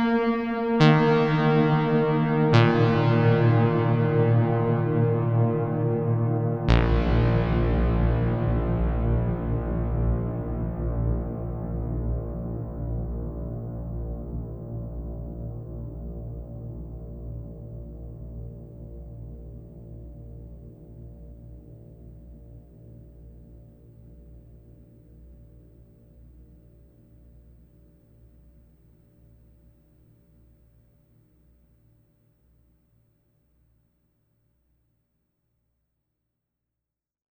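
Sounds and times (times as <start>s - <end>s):
ambient music: 0.0s - 15.1s.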